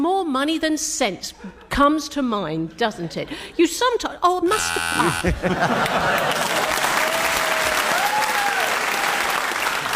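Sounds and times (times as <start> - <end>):
speech: 0.3 - 6.8
laughter: 4.9 - 7.3
audience applause: 5.6 - 9.9.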